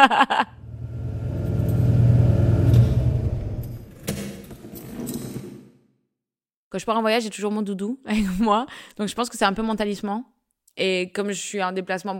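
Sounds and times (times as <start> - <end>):
laughter: 0.0 - 0.6
speech: 0.0 - 0.6, 6.8 - 12.1
car driving: 0.6 - 3.9.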